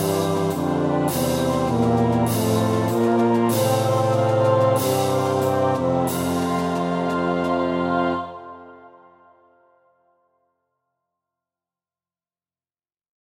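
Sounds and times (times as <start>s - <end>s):
tuba melody: 0.0s - 9.0s.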